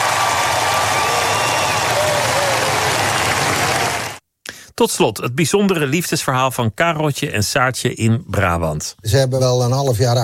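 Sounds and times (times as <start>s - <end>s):
crowd applauding: 0.0s - 4.2s
speech: 4.8s - 10.2s.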